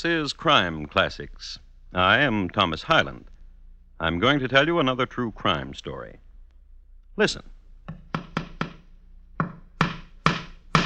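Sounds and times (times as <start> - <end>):
speech: 0.0 - 3.3, 4.0 - 6.2, 7.2 - 8.0
hammer driving a nail into a wall: 7.9 - 10.8.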